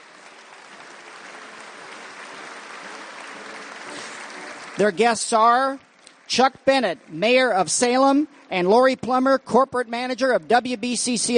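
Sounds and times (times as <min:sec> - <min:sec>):
audience round of applause: 0:00.0 - 0:08.6
speech: 0:04.8 - 0:11.3.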